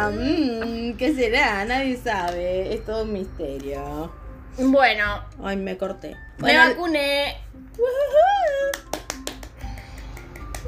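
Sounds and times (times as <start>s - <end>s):
speech: 0.0s - 8.9s
palm claps: 8.4s - 10.6s.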